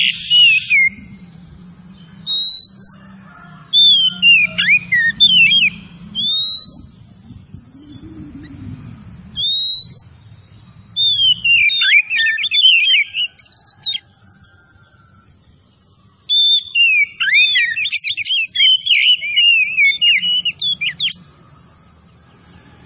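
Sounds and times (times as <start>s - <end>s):
Oriental magpie-robin singing: 0.0s - 1.2s, 1.9s - 3.0s, 3.7s - 8.5s, 9.3s - 14.0s, 16.2s - 21.3s.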